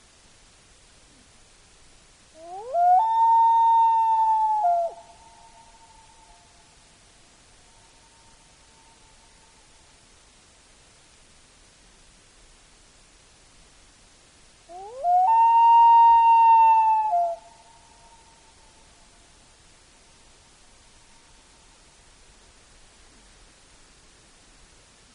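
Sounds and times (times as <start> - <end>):
Common Loon calls with extensive echo: 2.4 - 6.0, 14.7 - 17.6.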